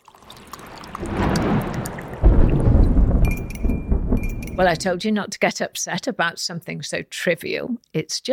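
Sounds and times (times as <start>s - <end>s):
stormy rumble: 0.5s - 5.0s
speech: 4.6s - 8.3s.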